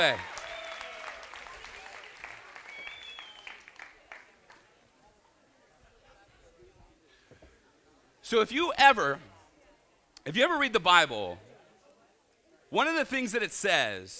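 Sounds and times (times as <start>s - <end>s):
speech: 0.0s - 0.3s, 8.3s - 9.3s, 10.2s - 11.4s, 12.7s - 14.1s
audience applause: 0.0s - 4.9s.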